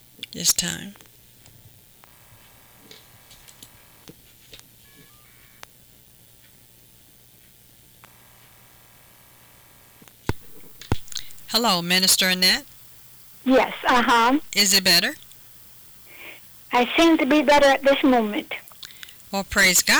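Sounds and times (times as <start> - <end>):
speech: 0.4 - 1.1, 11.6 - 12.7, 13.4 - 15.2, 16.7 - 18.6, 19.3 - 19.9
faint phone tones of a call being placed: 4.8 - 5.6, 10.3 - 12.7, 13.4 - 15.4, 16.0 - 19.9
soft clicks and ticks: 10.3 - 11.8, 15.2 - 19.3.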